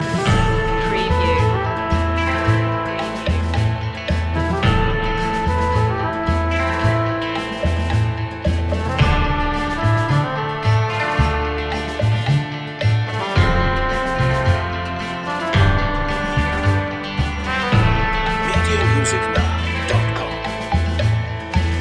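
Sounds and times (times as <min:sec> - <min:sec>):
western music loop: 0:00.0 - 0:21.7.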